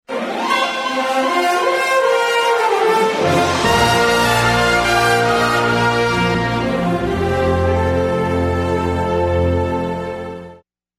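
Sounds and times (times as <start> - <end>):
evening news intro music: 0.4 - 10.6.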